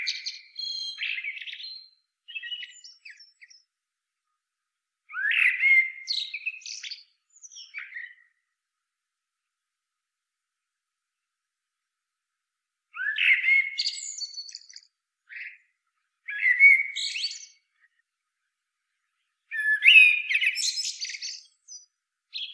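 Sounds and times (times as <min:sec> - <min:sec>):
common blackbird singing: 0:00.0 - 0:03.6, 0:05.1 - 0:08.4, 0:13.0 - 0:15.6, 0:16.3 - 0:17.9, 0:19.5 - 0:22.5.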